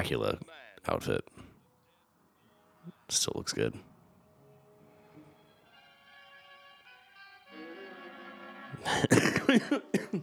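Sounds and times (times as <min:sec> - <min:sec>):
speech: 0:00.0 - 0:01.4, 0:02.8 - 0:03.9, 0:08.8 - 0:10.2
laughter: 0:07.6 - 0:10.2
person coughing from choking: 0:08.9 - 0:10.2.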